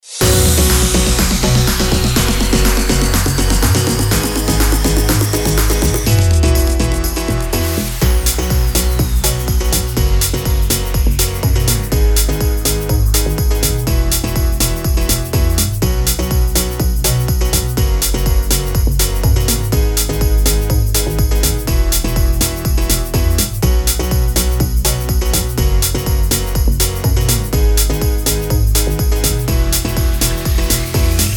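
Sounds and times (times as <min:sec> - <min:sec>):
EDM pop music bed in B major at 123 bpm: 0:00.1 - 0:31.3.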